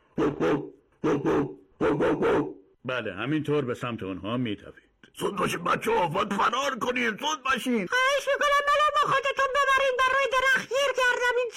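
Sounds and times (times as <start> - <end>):
garden dog barking while attacking: 0.1 - 2.6
speech: 0.2 - 0.6, 1.2 - 11.5.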